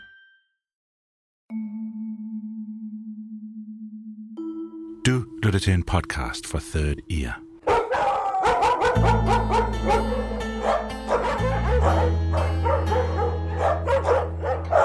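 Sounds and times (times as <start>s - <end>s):
speech: 5.0s - 7.4s
many dogs of different sizes and breeds barking at an animal shelter in Rødovre: 7.6s - 14.8s.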